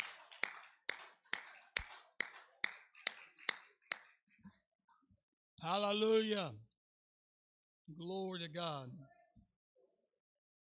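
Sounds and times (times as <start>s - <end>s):
audience hand clapping: 0.0s - 4.6s
speech: 5.6s - 6.7s, 7.9s - 9.2s.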